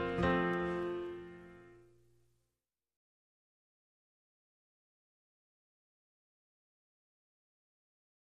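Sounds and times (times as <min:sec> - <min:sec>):
solo piano: 0:00.0 - 0:02.0.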